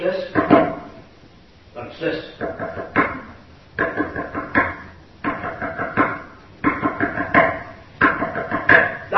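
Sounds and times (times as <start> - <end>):
speech: 2.0 - 3.0
knocking on a hard surface: 2.4 - 9.0.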